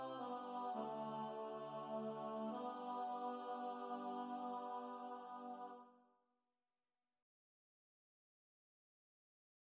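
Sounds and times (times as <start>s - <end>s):
tenor singing a Mass Sanctus: 0.0s - 5.8s.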